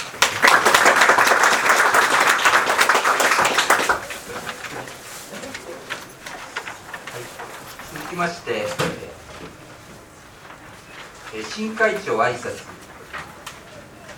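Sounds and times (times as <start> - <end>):
applause at a meeting: 0.0 - 4.9
speech: 8.2 - 9.0, 11.4 - 12.7.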